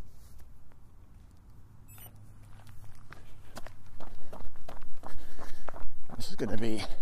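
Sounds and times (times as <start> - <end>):
footsteps of someone starting a run: 2.2 - 7.0
speech: 6.4 - 7.0.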